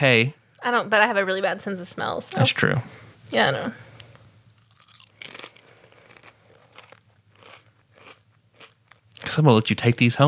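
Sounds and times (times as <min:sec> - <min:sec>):
speech: 0:00.0 - 0:03.8, 0:09.2 - 0:10.2
person crunching and chewing a flavored chip: 0:04.1 - 0:09.4.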